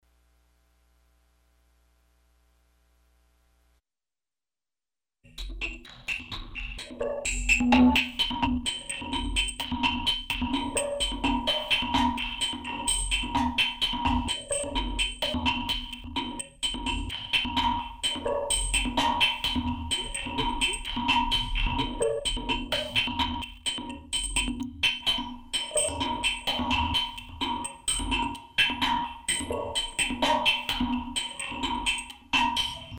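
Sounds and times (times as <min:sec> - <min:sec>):
percussion: 0:05.3 - 0:32.9.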